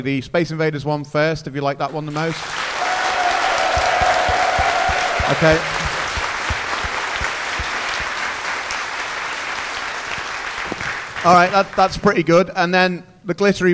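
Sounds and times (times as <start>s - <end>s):
speech: 0.0s - 2.7s, 5.3s - 5.8s, 11.2s - 13.7s
audience clapping: 1.9s - 12.2s.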